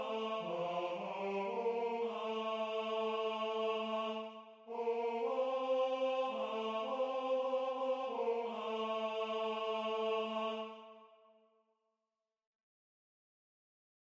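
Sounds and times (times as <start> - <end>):
tenor singing: 0.0 - 10.9.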